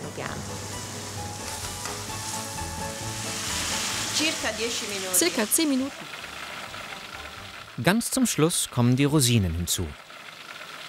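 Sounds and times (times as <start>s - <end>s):
food frying slowly over a low flame in a pan with dessert wine: 0.0s - 7.8s
speech: 4.2s - 6.2s, 7.8s - 10.0s.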